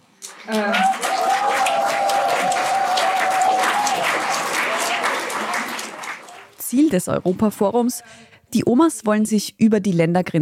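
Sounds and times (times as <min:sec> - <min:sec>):
applause for speakers at a meeting: 0:00.0 - 0:06.6
speech: 0:06.7 - 0:10.4.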